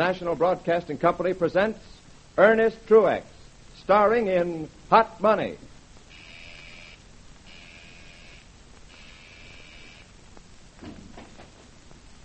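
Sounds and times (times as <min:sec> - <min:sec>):
speech: 0:00.0 - 0:05.7
buzzer ringing: 0:06.1 - 0:10.1.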